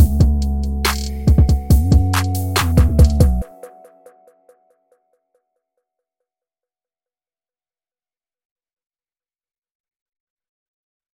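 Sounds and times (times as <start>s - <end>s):
lo-fi music: 0.0s - 4.8s.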